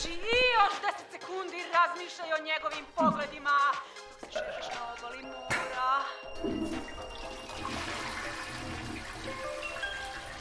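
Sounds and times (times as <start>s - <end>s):
speech: 0.7s - 5.4s
toilet flushing: 6.4s - 10.3s.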